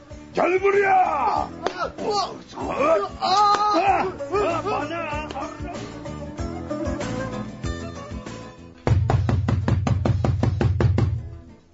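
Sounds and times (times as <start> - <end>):
speech: 0.4 - 6.0
loud pounding on a door: 8.9 - 11.2.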